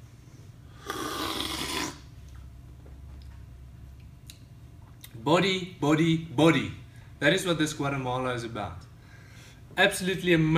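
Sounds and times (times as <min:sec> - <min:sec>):
low steady hum: 0:00.0 - 0:10.5
slurping coffee while tasting: 0:00.8 - 0:02.1
speech: 0:05.2 - 0:08.9, 0:09.8 - 0:10.5.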